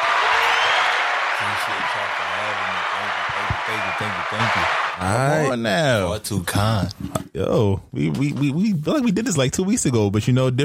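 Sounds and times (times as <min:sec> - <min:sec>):
clapping applause in studio: 0:00.0 - 0:05.1
speech: 0:01.7 - 0:10.6.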